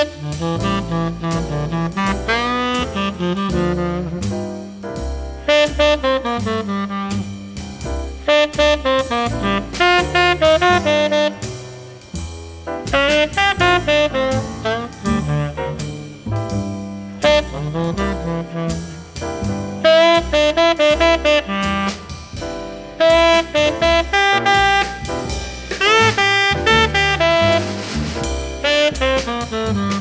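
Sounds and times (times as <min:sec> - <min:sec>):
jazz music: 0:00.0 - 0:29.9.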